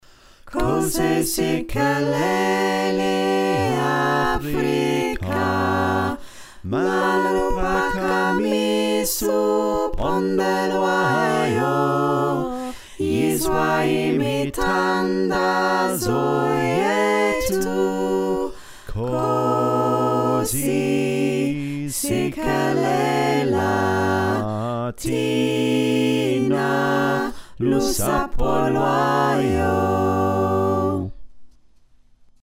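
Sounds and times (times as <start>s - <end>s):
soprano alto tenor bass choir singing: 0.5s - 31.1s.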